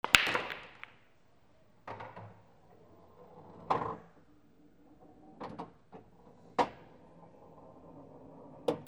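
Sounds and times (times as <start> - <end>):
billiard balls: 0.0 - 1.2.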